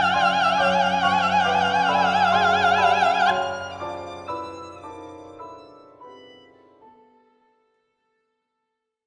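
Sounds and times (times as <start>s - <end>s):
live duet: 0.0s - 6.5s.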